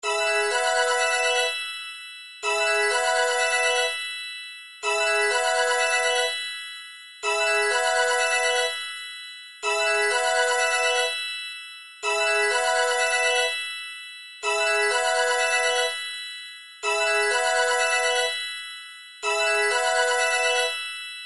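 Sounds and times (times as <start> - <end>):
MIDI ringtone: 0.0 - 21.2.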